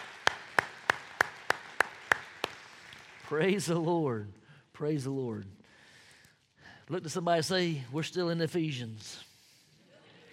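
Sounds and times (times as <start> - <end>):
audience hand clapping: 0.0 - 3.9
speech: 3.3 - 5.6, 6.9 - 9.3.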